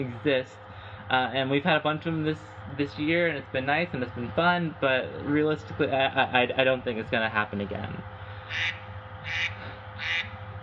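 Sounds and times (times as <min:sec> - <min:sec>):
speech: 0:00.0 - 0:08.8
low steady hum: 0:00.0 - 0:10.6
duck quacking: 0:08.5 - 0:10.4.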